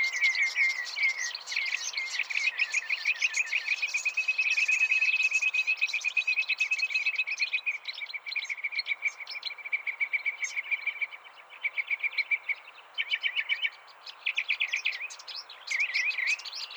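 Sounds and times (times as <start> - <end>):
birds: 0.0 - 16.7.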